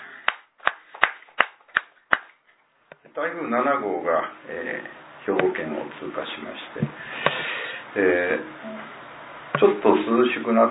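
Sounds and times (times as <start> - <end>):
hand claps: 0.2 - 2.4
speech: 3.2 - 7.2, 7.9 - 9.0, 9.6 - 10.6.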